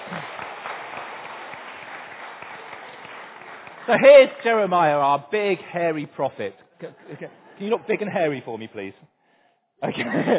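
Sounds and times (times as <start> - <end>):
audience round of applause: 0.0 - 5.0
speech: 3.9 - 9.1, 9.8 - 10.3
laughter: 9.8 - 10.3.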